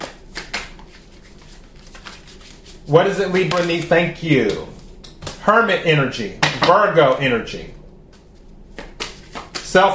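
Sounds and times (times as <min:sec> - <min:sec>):
tarot deck being shuffled during a love reading: 0:00.0 - 0:05.4, 0:08.1 - 0:09.8
speech: 0:02.9 - 0:04.8, 0:05.5 - 0:07.8, 0:09.8 - 0:09.9.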